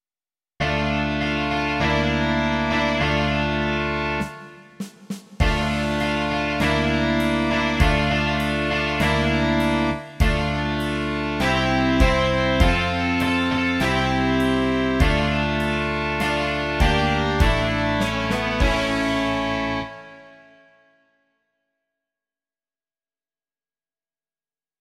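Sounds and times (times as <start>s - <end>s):
rock music: 0.6s - 20.4s.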